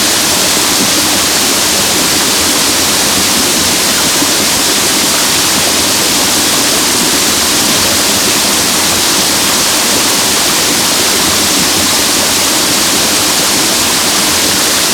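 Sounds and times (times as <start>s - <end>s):
waterfall: 0.0s - 14.9s.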